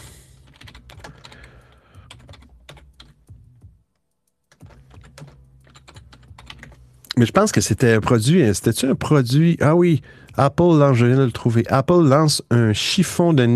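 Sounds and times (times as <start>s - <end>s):
rapid typing on a computer keyboard: 0.4s - 3.2s, 4.4s - 6.8s
speech: 7.2s - 13.5s.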